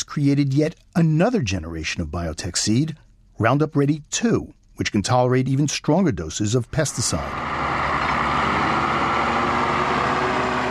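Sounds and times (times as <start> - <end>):
speech: 0.1 - 7.8
road grader engine working on a soy highway: 7.0 - 10.7.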